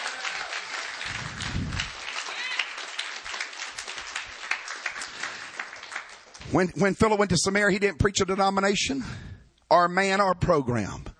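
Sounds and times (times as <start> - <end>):
audience clapping hands: 0.0 - 6.7
speech: 6.5 - 11.1.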